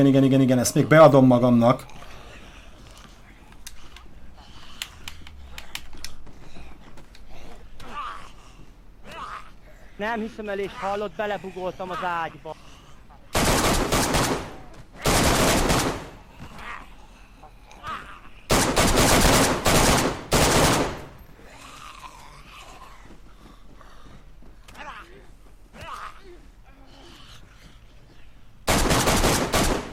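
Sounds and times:
speech: 0:00.0 - 0:02.0, 0:10.0 - 0:12.7
video game gunfire: 0:13.3 - 0:16.2, 0:18.5 - 0:21.2, 0:28.7 - 0:29.9.

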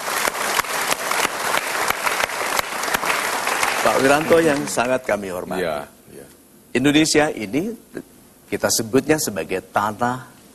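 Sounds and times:
audience applause during a talk show: 0:00.0 - 0:05.0
speech: 0:03.8 - 0:10.4.

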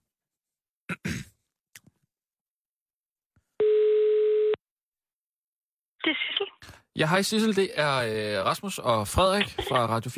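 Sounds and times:
telephone ringing tone: 0:03.6 - 0:04.6
speech: 0:07.0 - 0:10.1.

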